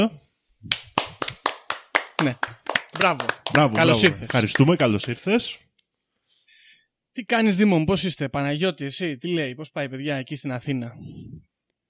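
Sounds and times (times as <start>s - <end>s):
speech: 0.0s - 0.8s, 2.2s - 5.6s, 7.2s - 11.5s
hand clapping to welcome a guest: 0.7s - 5.4s.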